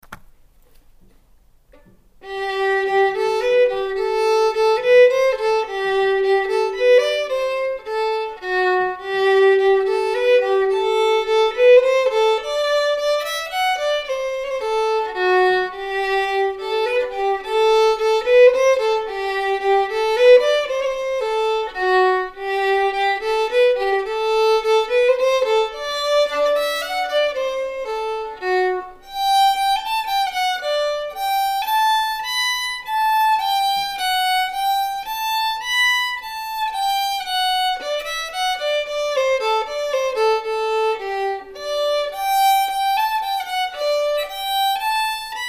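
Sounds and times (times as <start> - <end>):
fiddle tune: 1.7 - 45.4.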